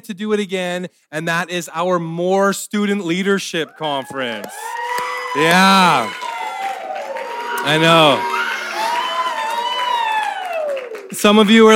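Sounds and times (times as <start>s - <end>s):
speech: 0.0s - 6.2s, 7.6s - 8.4s, 11.2s - 11.7s
audience cheering: 3.6s - 11.7s.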